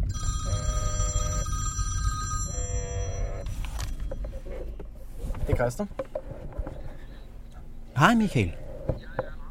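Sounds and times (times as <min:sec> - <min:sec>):
mobile phone ringing: 0:00.1 - 0:04.4
speech: 0:05.5 - 0:06.1, 0:08.0 - 0:09.0.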